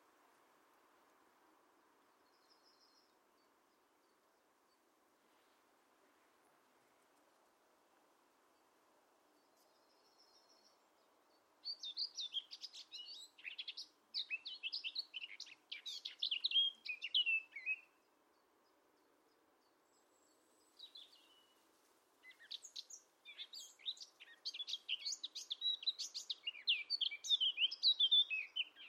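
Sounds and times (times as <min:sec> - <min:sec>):
bird singing scratchy chirps and brief whistles: 0:02.2 - 0:03.5, 0:11.6 - 0:18.4, 0:19.0 - 0:21.6, 0:22.2 - 0:28.8.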